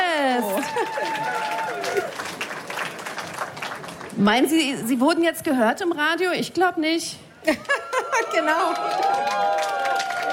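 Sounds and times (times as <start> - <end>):
audience applause: 0.3 - 4.3, 7.8 - 10.3
speech: 4.2 - 7.8, 8.4 - 9.5.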